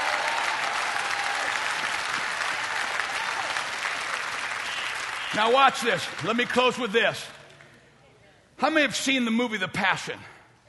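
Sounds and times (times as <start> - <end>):
audience clapping: 0.0 - 7.8
speech: 5.3 - 7.4, 8.6 - 10.3.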